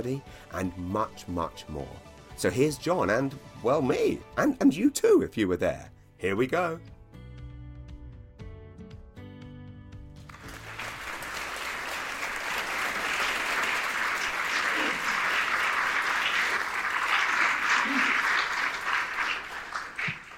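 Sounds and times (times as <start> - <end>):
speech: 0.0 - 7.0
audience applause: 10.3 - 20.3.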